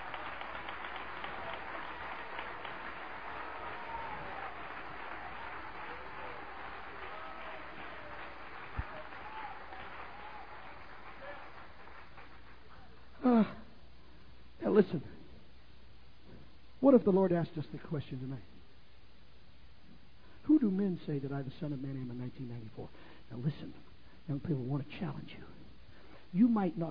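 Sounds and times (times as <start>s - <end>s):
crowd applauding: 0.0s - 13.1s
speech: 14.8s - 15.2s, 16.9s - 18.6s, 20.6s - 25.6s, 26.3s - 26.8s.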